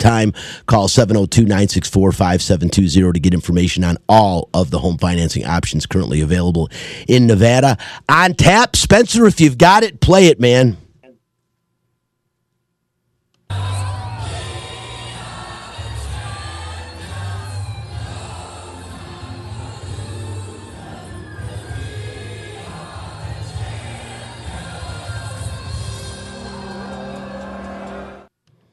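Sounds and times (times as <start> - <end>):
speech: 0.0 - 10.8
huge crowd singing along at concert: 13.5 - 28.3.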